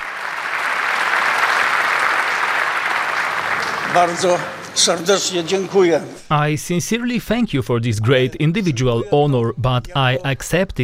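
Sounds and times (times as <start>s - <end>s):
standing ovation applause for the leader of the Polish Democratic Opposition: 0.0s - 6.0s
speech: 4.0s - 10.8s.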